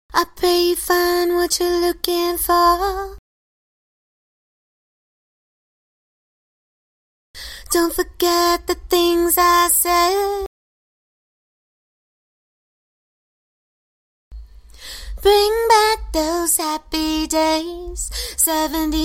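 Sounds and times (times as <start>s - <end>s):
a cappella vocals in C minor: 0.1s - 3.2s, 7.4s - 10.5s, 14.7s - 19.0s.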